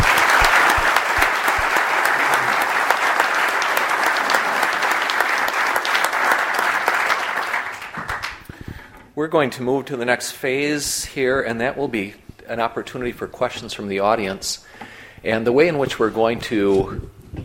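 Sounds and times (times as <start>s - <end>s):
audience applause at a panel discussion event: 0.0s - 8.5s
speech: 9.2s - 17.2s.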